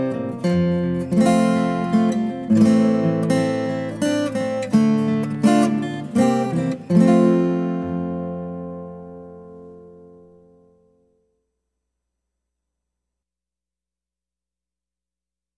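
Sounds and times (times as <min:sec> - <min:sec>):
guitar: 0:00.0 - 0:11.5.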